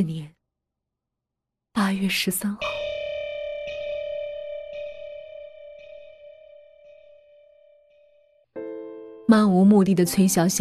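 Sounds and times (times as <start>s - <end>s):
speech: 0.0s - 0.4s, 1.8s - 2.8s, 9.3s - 10.5s
electronic time-announcement chime: 2.6s - 8.3s.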